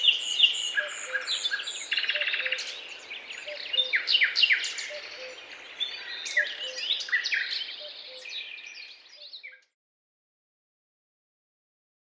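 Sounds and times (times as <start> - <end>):
birds chirping in a forest: 0.0 - 9.7.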